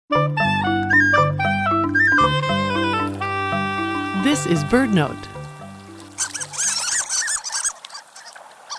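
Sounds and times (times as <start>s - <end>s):
low musical tones: 0.1s - 6.7s
Harlequin Duck squeaks: 1.9s - 2.4s, 6.0s - 8.7s
speech: 4.4s - 5.3s.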